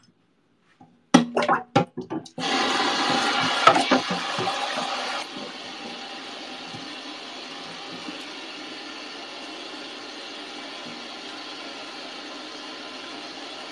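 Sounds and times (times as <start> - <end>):
small pot scrubbed, knocks, scrapes and clinks: 1.2 - 9.1
running water: 2.4 - 13.7.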